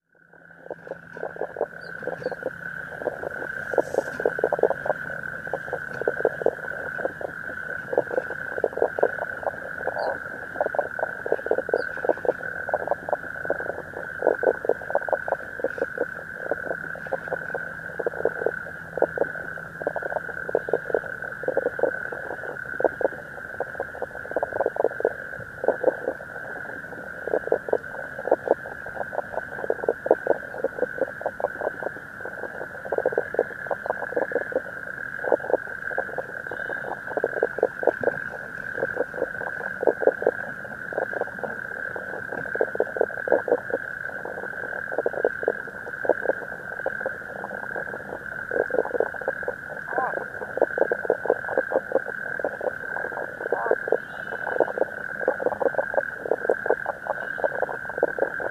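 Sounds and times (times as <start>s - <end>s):
common spadefoot toad calling: 0.2s - 58.4s.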